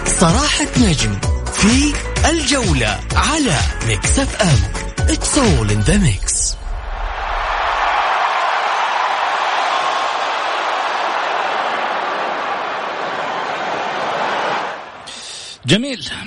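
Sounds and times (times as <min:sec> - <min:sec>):
speech: 0:00.2 - 0:06.5, 0:15.7 - 0:16.2
stadium crowd noise: 0:06.6 - 0:15.3.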